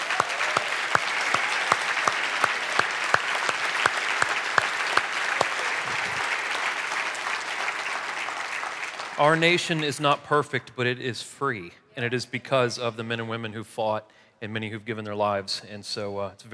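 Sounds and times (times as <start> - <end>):
audience applause: 0.0 - 9.8
speech: 9.2 - 16.5.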